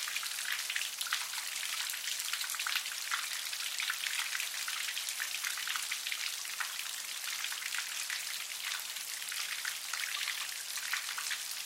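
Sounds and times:
rain water dripping and splattering from an awning in an alley: 0:00.0 - 0:11.6.

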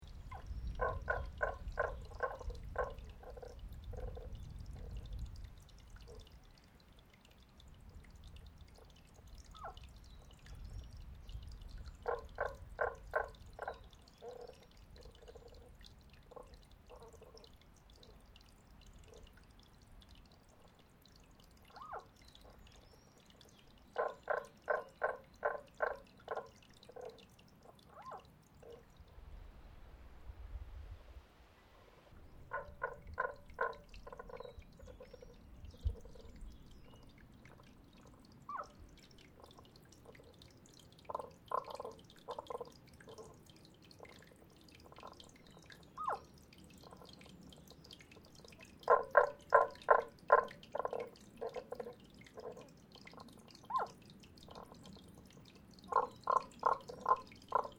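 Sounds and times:
strange creature, frog or mammal, down a drain in Aomori Japan: 0:00.0 - 0:29.2, 0:31.9 - 0:57.7.

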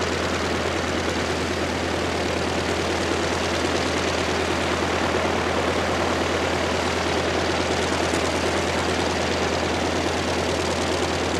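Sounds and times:
CAC CA-16 Wirraway aircraft preflight: 0:00.0 - 0:11.3.

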